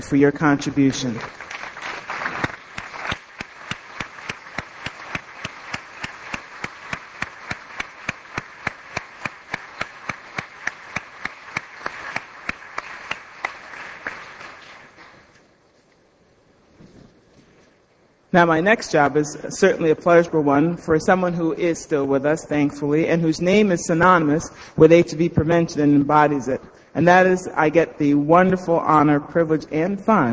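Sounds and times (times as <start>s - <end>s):
speech: 0.0s - 1.6s, 18.3s - 30.3s
standing audience applause: 1.2s - 15.3s.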